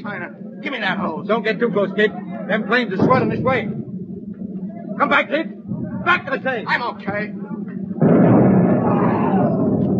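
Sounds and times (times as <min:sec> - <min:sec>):
speech: 0:00.3 - 0:03.8, 0:05.0 - 0:07.4
main fuel tank exploding on a burning ship: 0:03.0 - 0:04.2, 0:08.0 - 0:09.9.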